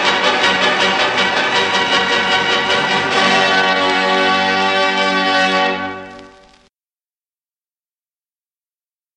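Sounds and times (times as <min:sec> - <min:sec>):
Spanish dance music: 0:00.0 - 0:06.5.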